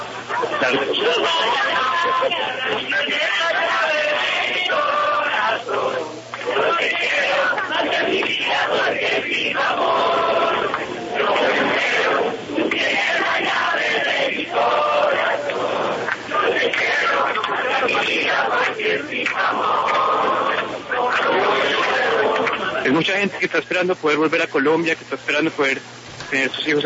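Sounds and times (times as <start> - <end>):
laughter: 0.0 - 4.3, 6.5 - 8.8
crowd of demonstrators singing together: 0.0 - 23.3
speech: 0.4 - 12.4, 22.9 - 26.8.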